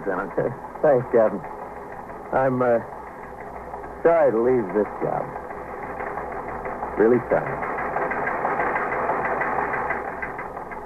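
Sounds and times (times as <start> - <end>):
speech: 0.0 - 1.6, 2.3 - 3.0, 4.0 - 5.4, 7.0 - 7.7
teletype machine clattering out a list of police promotions: 0.0 - 10.8.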